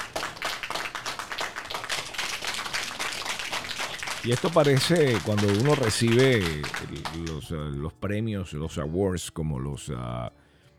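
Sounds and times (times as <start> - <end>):
audience applause: 0.0 - 7.5
speech: 4.2 - 10.4.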